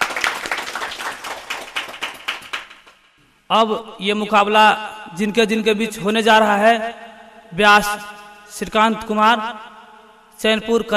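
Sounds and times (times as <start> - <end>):
audience applause: 0.0 - 3.0
speech: 3.5 - 9.7, 10.4 - 10.9.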